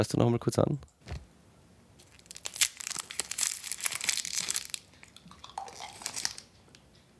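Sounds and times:
speech: 0.0 - 1.0
Dextro Energy candy wrapper unwrapping: 2.0 - 6.5.

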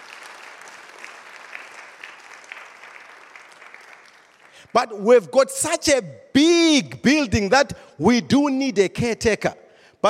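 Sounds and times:
audience clapping hands: 0.0 - 5.0
speech: 4.6 - 10.0.

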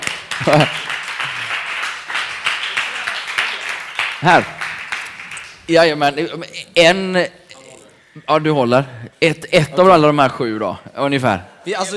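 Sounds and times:
applause: 0.0 - 5.7
speech: 0.4 - 0.8, 4.2 - 4.6, 5.7 - 7.4, 8.2 - 11.9.

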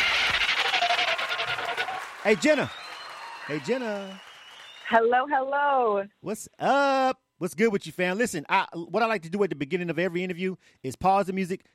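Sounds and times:
applause: 0.0 - 5.2
speech: 2.3 - 2.8, 3.5 - 4.3, 4.9 - 11.7.

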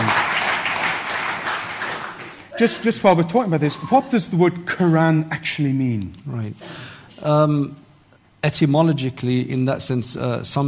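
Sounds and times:
audience applause: 0.0 - 2.5
speech: 2.6 - 7.8, 8.4 - 10.6.

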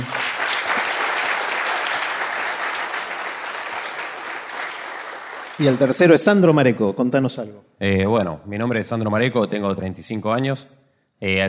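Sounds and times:
audience applause: 0.0 - 6.3
speech: 5.6 - 11.4.

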